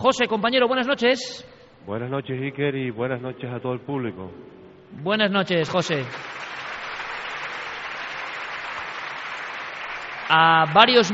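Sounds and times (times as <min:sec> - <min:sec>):
speech: 0:00.0 - 0:06.4, 0:10.3 - 0:11.1
audience applause at the Cúpula del Milenio in Valladolid: 0:06.0 - 0:11.1.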